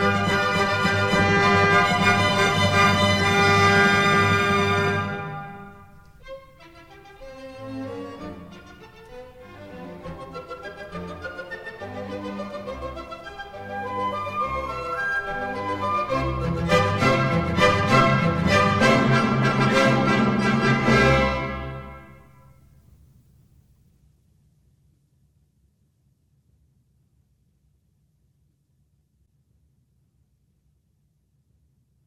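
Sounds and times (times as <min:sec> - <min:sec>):
classical dance piece in C major: 0:00.0 - 0:22.5.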